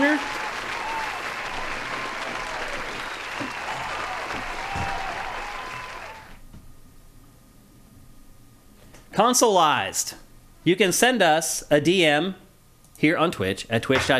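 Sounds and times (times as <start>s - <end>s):
round of applause for a winner: 0.0s - 6.4s
speech: 9.2s - 12.4s, 13.0s - 14.1s.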